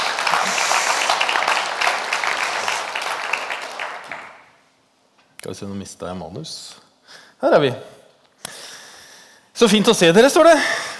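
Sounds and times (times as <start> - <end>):
audience clapping: 0.0 - 4.6
speech: 5.5 - 6.8, 7.4 - 8.0, 9.6 - 10.9.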